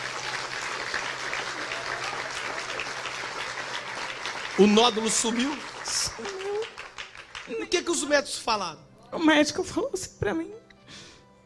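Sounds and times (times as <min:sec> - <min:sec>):
audience applauding: 0:00.0 - 0:08.1
speech: 0:04.6 - 0:06.4, 0:07.5 - 0:10.6.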